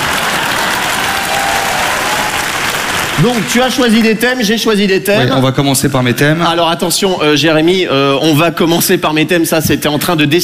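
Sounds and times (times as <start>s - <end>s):
audience applauding: 0.0s - 4.4s
speech: 3.2s - 10.4s.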